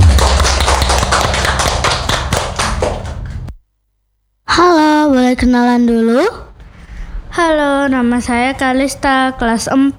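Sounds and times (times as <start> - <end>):
audience clapping hands: 0.0 - 3.6
speech: 5.4 - 6.4, 7.4 - 9.9.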